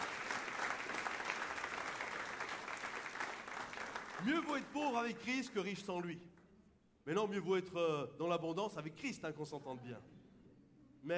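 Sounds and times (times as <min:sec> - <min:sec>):
crowd clapping: 0:00.0 - 0:05.6
speech: 0:04.2 - 0:06.3, 0:07.1 - 0:10.1.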